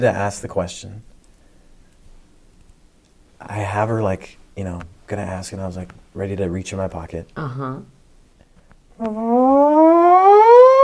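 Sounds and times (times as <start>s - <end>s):
speech: 0.0s - 1.1s, 3.4s - 8.0s, 9.0s - 10.4s
fire engine siren passing in street: 9.0s - 10.8s.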